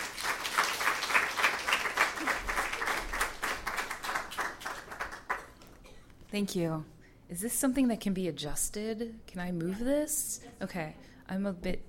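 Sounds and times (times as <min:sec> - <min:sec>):
audience applause welcoming poet Kiki Petrosino at a reading: 0:00.0 - 0:05.6
speech: 0:06.3 - 0:11.8.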